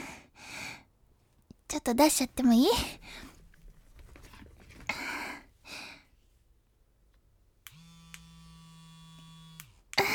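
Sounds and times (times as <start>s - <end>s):
speech: 1.7s - 3.3s
electric vibrator buzzing: 7.7s - 10.0s.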